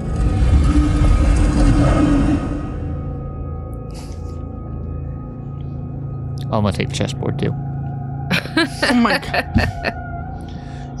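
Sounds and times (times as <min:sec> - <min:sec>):
stone door grinding open: 0:00.0 - 0:03.0
speech: 0:06.5 - 0:07.7, 0:08.5 - 0:10.0
laughter: 0:08.3 - 0:10.0.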